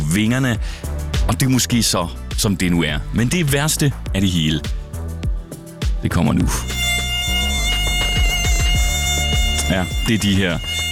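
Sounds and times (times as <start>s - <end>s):
speech: 0.1s - 4.8s, 6.0s - 6.8s, 9.7s - 10.9s
mosquitoes whining during a solar eclipse: 6.6s - 10.9s
swooping low tones: 6.6s - 10.9s.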